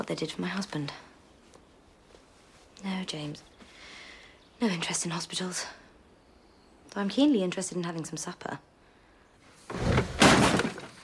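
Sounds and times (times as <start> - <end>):
speech: 0.0 - 1.1, 2.8 - 3.5, 4.6 - 5.8, 6.9 - 8.7
furniture overturned: 9.7 - 11.0
debris clattering: 9.9 - 11.0
stage props being smashed: 10.1 - 11.0.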